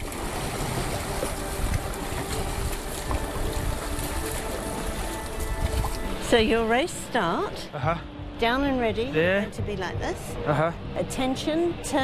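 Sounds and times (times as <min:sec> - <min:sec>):
water sloshing around a dragon boat hull: 0:00.0 - 0:07.3
speech: 0:06.3 - 0:12.0.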